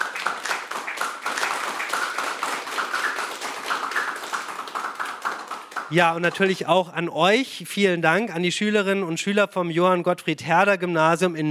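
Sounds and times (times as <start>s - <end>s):
applause: 0.0s - 6.7s
speech: 5.9s - 11.5s.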